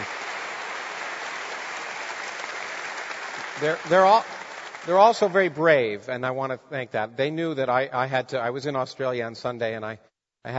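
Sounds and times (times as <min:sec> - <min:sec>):
audience round of applause: 0:00.0 - 0:05.7
speech: 0:03.6 - 0:10.5.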